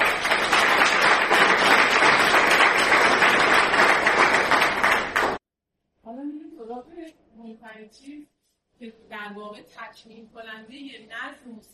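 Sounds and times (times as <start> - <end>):
audience applause: 0.0 - 5.4
speech: 7.9 - 11.7.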